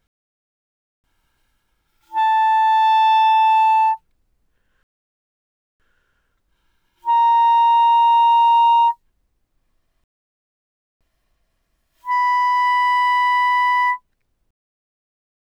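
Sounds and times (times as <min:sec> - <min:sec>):
B-flat clarinet notes played mezzo forte from C5 to B5: 0:02.1 - 0:04.0, 0:07.0 - 0:09.0, 0:12.0 - 0:14.0.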